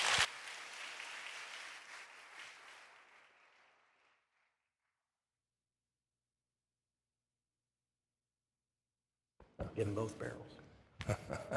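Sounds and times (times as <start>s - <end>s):
audience applause welcoming a speaker to the platform: 0.0s - 3.6s
speech: 9.8s - 11.5s
laughter: 11.0s - 11.5s.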